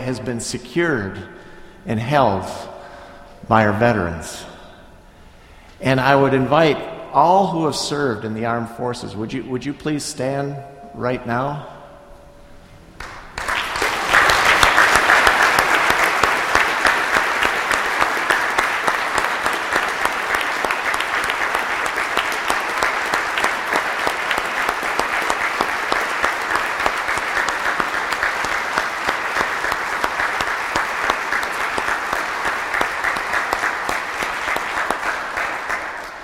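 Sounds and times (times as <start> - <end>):
speech: 0.0 - 2.7, 3.4 - 4.5, 5.8 - 11.8
audience applause: 13.0 - 36.2.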